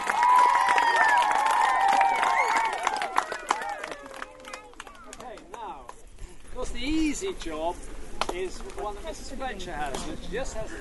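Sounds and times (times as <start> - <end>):
round of applause: 0.0 - 6.0
speech: 7.2 - 10.8.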